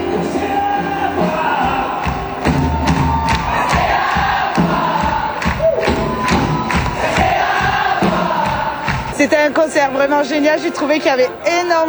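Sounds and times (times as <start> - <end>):
large concert crowd cheering and shouting: 0.0 - 11.8
scattered whoops from concert crowd: 0.2 - 9.0
sharp claps or thumps: 2.0 - 9.2
speech: 9.2 - 11.8.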